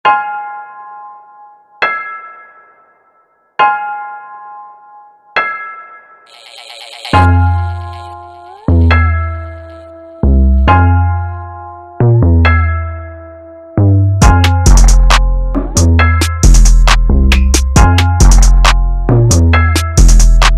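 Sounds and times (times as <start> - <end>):
instrumental music: 6.3 - 20.5.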